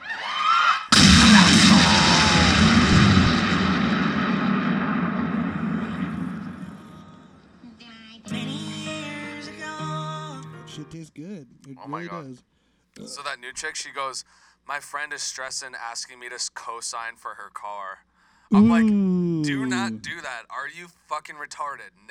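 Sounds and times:
rocket blasting off: 0.9 - 7.8
speech: 11.0 - 22.1.

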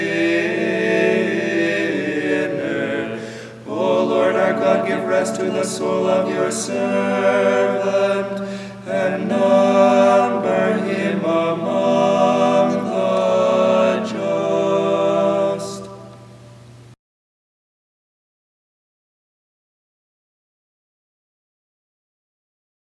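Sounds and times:
choir chanting stichera: 0.0 - 16.1.

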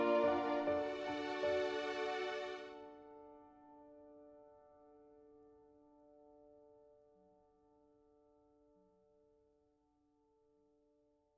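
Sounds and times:
cartoon film music: 0.0 - 1.7.

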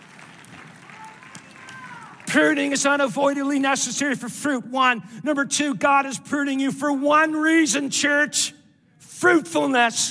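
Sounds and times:
audience clapping in praise: 0.0 - 3.0
speech: 2.3 - 8.6, 9.2 - 10.0.

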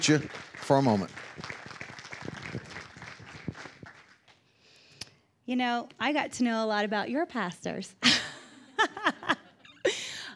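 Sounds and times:
speech: 0.0 - 1.6, 5.5 - 8.2
audience clapping to welcome a speaker's wife to the stage: 0.0 - 4.6
laughter: 8.0 - 10.1.

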